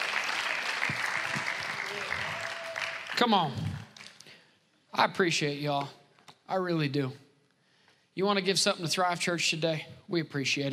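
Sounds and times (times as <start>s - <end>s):
audience clapping hands: 0.0s - 4.4s
speech: 3.2s - 3.7s, 5.0s - 7.2s, 8.2s - 10.7s.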